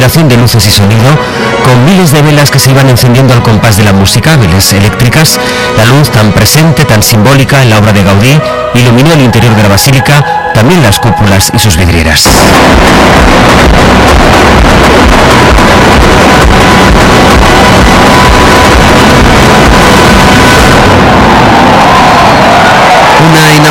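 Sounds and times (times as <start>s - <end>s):
speech: 0.0s - 22.3s, 23.2s - 23.6s
fireworks display: 12.2s - 21.3s
crowd ovation: 12.2s - 23.6s.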